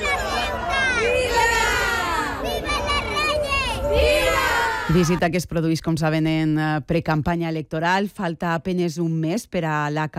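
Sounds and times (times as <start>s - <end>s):
large crowd cheering: 0.0s - 5.2s
speech: 4.9s - 10.1s.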